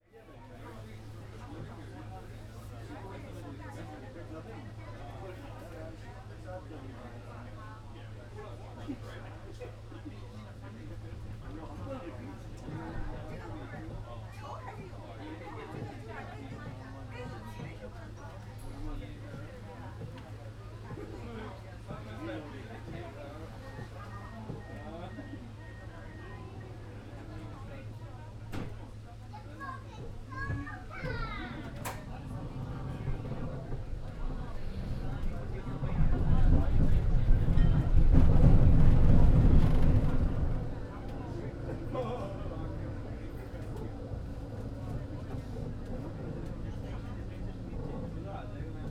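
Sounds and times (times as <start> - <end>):
train interior ambience: 0.1 - 48.8.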